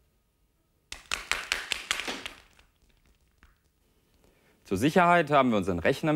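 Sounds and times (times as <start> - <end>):
balls hitting the floor at even intervals: 0.9 - 3.7
speech: 4.7 - 6.1.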